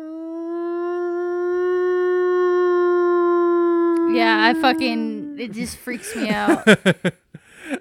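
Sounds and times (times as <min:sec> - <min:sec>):
siren from a horror video game: 0:00.0 - 0:05.4
speech: 0:04.1 - 0:07.3
laughter: 0:05.6 - 0:07.8.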